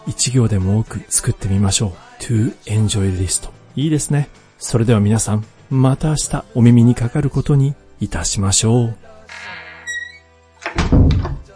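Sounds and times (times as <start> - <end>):
speech: 0.1 - 9.6
door closing sound effect: 9.2 - 11.5.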